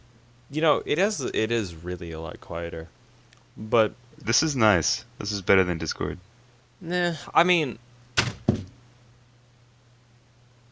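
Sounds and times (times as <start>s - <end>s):
speech: 0.5s - 3.0s, 3.6s - 8.4s
phone falling onto keyboard: 8.2s - 8.8s.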